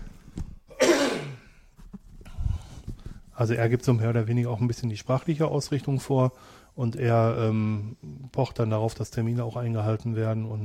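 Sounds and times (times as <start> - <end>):
loud rasping throat clearing: 0.7 - 1.5
soft breathy sounds: 1.4 - 3.4, 6.3 - 6.8
speech: 3.4 - 10.6.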